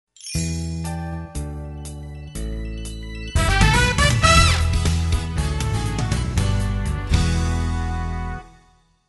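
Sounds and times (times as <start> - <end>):
radio liner music bed: 0.2 - 9.0.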